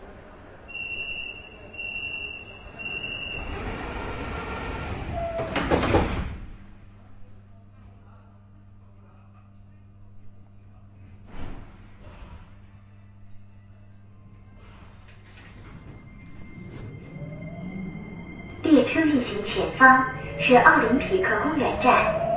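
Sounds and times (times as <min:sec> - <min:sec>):
metro train doors sliding at Olympic Sports Center Station: 0:02.0 - 0:06.8, 0:11.3 - 0:12.7, 0:14.5 - 0:22.3
metro station tonal chimes: 0:15.8 - 0:22.3.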